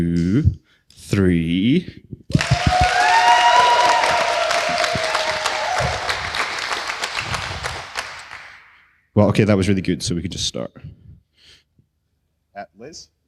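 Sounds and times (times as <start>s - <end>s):
speech: 0.0s - 3.3s, 9.2s - 11.0s, 12.6s - 13.2s
loud round of applause: 2.3s - 8.8s.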